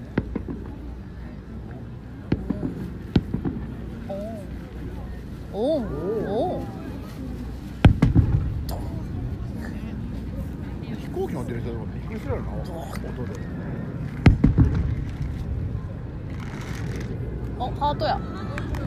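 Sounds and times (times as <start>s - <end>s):
crowd talking at a fireworks festival: 0.0s - 18.8s
fireworks bangs at a fireworks festival: 2.2s - 4.1s, 7.8s - 9.6s, 14.1s - 17.2s.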